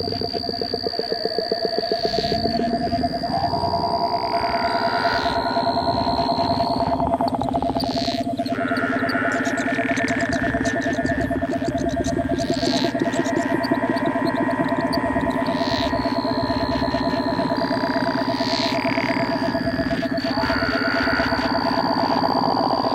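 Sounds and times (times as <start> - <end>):
frog or toad trilling: 0.0 - 22.9
thin high whining tones: 0.0 - 22.9.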